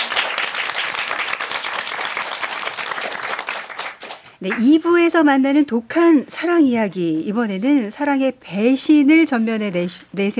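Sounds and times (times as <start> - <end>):
audience applause: 0.0 - 4.3
speech: 4.4 - 10.3.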